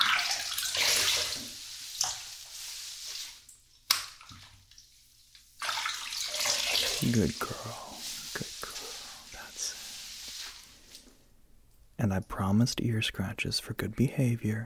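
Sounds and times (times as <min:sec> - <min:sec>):
water rinsing shampoo out of hair: 0:00.0 - 0:11.2
speech: 0:07.0 - 0:08.5, 0:12.0 - 0:14.6.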